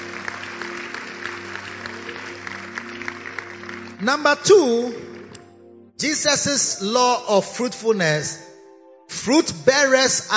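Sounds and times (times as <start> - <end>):
audience clapping: 0.0 - 5.4
speech: 4.0 - 5.1, 6.0 - 8.4, 9.2 - 10.3.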